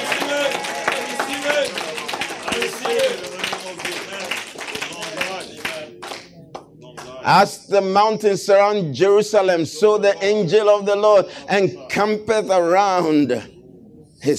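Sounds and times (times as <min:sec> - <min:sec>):
audience clapping: 0:00.0 - 0:07.2
speech: 0:02.6 - 0:03.4, 0:07.2 - 0:13.5.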